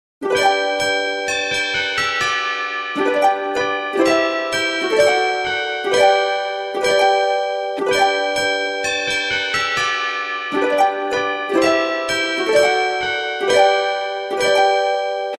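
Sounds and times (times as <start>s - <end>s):
Christmas carol ringtone: 0.2s - 15.3s.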